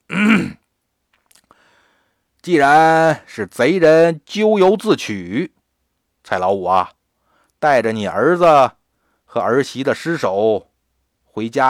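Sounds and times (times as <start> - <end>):
throat clearing: 0.1 - 0.7
speech: 2.4 - 5.6, 6.3 - 7.0, 7.6 - 10.7, 11.4 - 11.6.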